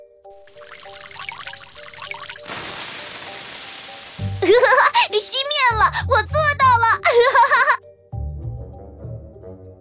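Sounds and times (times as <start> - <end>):
boy urinating: 0.4 - 5.1
speech: 4.5 - 7.7.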